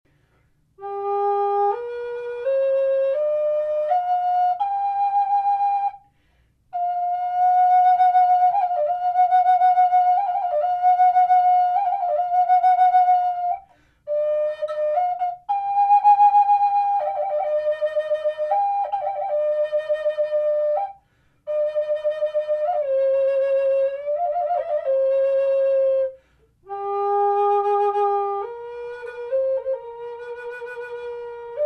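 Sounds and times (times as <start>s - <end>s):
natural wood flute: 0.1s - 31.6s.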